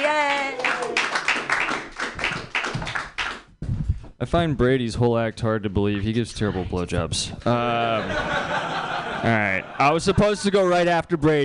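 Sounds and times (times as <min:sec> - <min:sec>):
audience applause for a comedian at a comedy show: 0:00.0 - 0:03.4
speech: 0:04.2 - 0:08.6, 0:09.2 - 0:11.4
laughter: 0:07.5 - 0:11.0.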